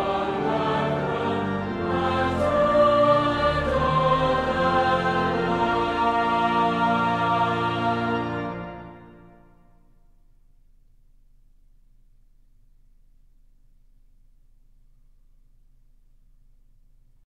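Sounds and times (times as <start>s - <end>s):
choir singing: 0.0s - 9.4s.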